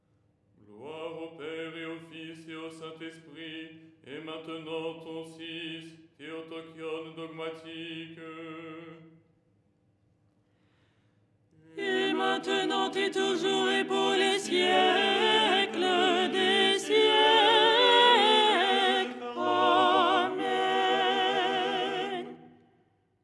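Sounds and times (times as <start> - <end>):
soprano singing: 11.8 - 22.5.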